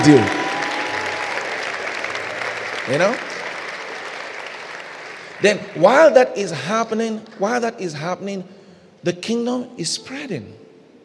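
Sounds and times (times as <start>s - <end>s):
speech: 0.0s - 0.4s, 2.9s - 3.3s, 5.4s - 10.6s
audience clapping: 0.0s - 7.0s.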